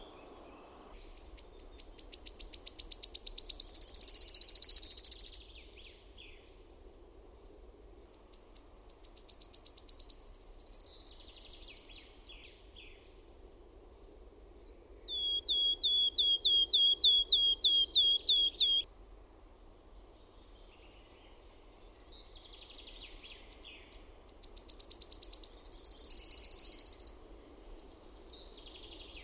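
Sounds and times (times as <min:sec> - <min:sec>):
Wood warbler song of sharp high downslurred ticking notes: 0:01.0 - 0:05.5, 0:08.0 - 0:13.0, 0:15.1 - 0:18.9, 0:21.7 - 0:29.2.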